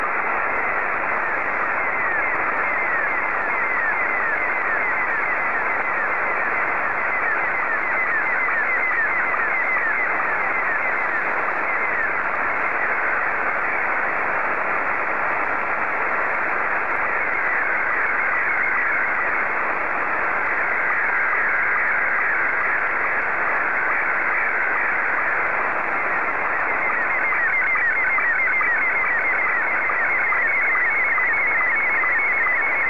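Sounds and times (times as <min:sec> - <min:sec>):
SSTV Scottie 2 signal: 0:00.0 - 0:32.8.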